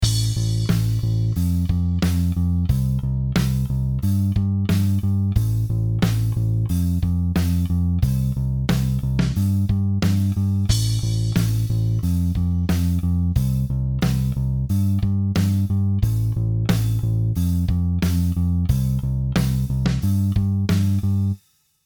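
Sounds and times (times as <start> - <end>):
bass: 0.0 - 21.4.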